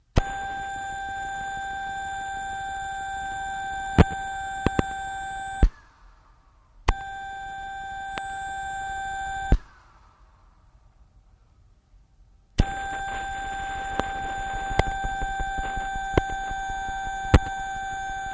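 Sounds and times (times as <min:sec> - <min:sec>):
field radio charge-up winding: 0:00.2 - 0:05.9, 0:06.9 - 0:09.8, 0:12.6 - 0:18.3.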